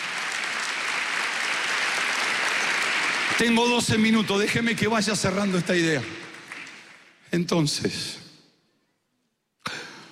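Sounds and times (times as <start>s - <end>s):
applause: 0.0s - 7.7s
speech: 3.3s - 6.2s, 7.3s - 8.2s.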